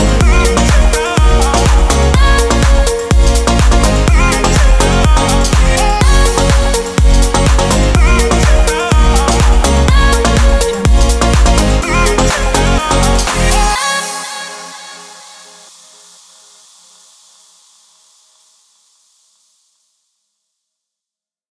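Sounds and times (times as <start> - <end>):
summer dance pop music: 0.0 - 16.0.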